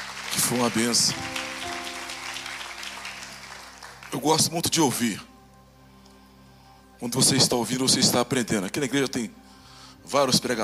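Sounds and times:
audience applause: 0.0 - 4.5
speech: 0.4 - 1.4, 4.2 - 5.3, 7.0 - 9.4, 10.0 - 10.6.

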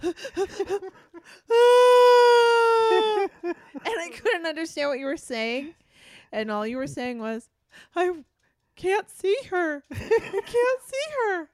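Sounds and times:
speech: 0.0 - 1.0, 4.8 - 11.5
person imitating hysterical crying: 0.0 - 4.1.

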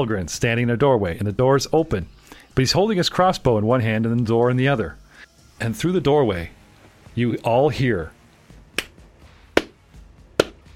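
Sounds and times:
speech: 0.0 - 5.0, 5.6 - 6.6, 7.2 - 8.2
slow deliberate hand claps: 8.7 - 9.0, 9.6 - 9.8, 10.4 - 10.7.

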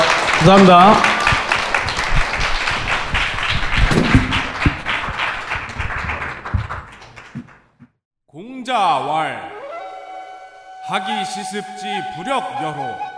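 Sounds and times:
audience applause: 0.0 - 7.7
speech: 0.4 - 1.1, 8.7 - 9.6, 10.9 - 13.1.

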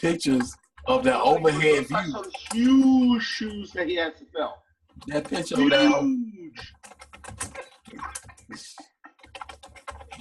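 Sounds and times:
typing hard on a computer keyboard: 0.0 - 2.9, 4.9 - 5.6, 6.6 - 10.1
speech: 0.0 - 6.8, 7.9 - 8.9.

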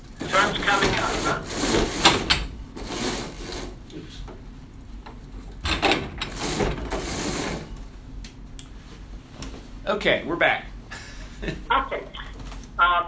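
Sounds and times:
window blinds being shut: 0.2 - 3.8, 5.7 - 7.7
speech: 10.0 - 10.7, 11.4 - 12.2.

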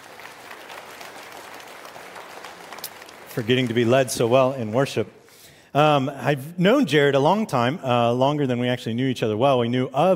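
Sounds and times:
audience applause at a church worship service: 0.0 - 5.4
speech: 3.4 - 10.1.

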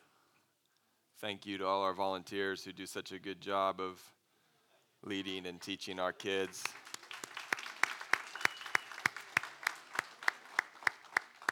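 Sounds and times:
speech: 1.2 - 4.2, 5.0 - 6.9
audience applause: 6.6 - 11.5.

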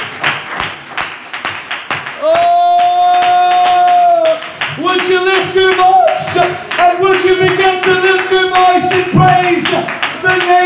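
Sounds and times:
audience clapping hands: 0.0 - 10.6.

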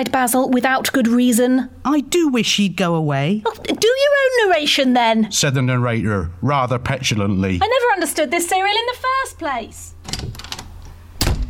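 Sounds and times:
speech: 0.0 - 9.9
studio door slammed shut: 10.1 - 11.4.

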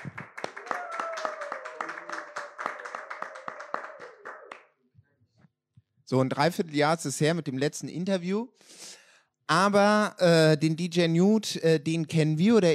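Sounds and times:
crowd cheering: 0.0 - 4.7
applause: 0.0 - 4.8
speech: 6.1 - 8.8, 9.5 - 12.7.

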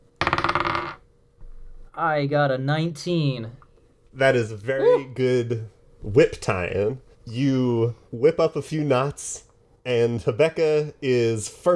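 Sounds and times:
dice clattering on a hard surface: 0.2 - 1.0
speech: 2.0 - 11.7.

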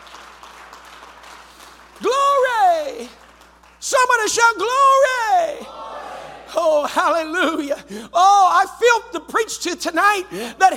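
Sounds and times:
crowd clapping hands: 0.0 - 4.4
speech: 4.0 - 5.7, 6.6 - 10.7.

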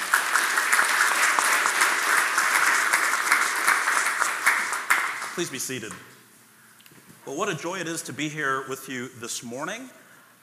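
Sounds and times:
church congregation clapping to welcome Canon Jack: 0.0 - 6.1
speech: 5.4 - 6.1, 7.3 - 10.0.

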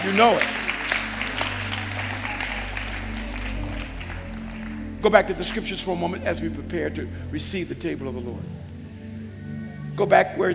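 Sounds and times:
speech: 0.0 - 0.6, 5.0 - 8.6, 10.0 - 10.5
audience clapping: 0.0 - 6.0
low sustained hum: 0.0 - 9.9.

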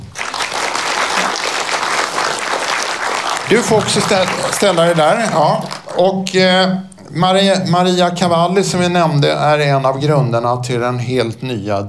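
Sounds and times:
audience applause: 0.0 - 6.0
speech: 3.5 - 11.8.

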